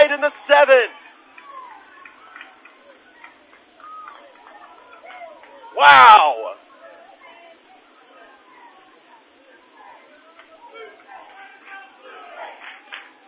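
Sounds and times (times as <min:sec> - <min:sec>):
stadium crowd chanting a team name: 0:00.0 - 0:13.2
speech: 0:00.2 - 0:01.0, 0:05.8 - 0:06.4.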